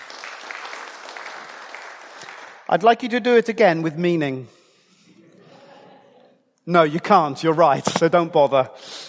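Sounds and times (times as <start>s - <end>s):
audience applause: 0.0s - 2.7s
speech: 2.7s - 4.6s, 6.7s - 8.9s
laughter: 5.2s - 6.5s.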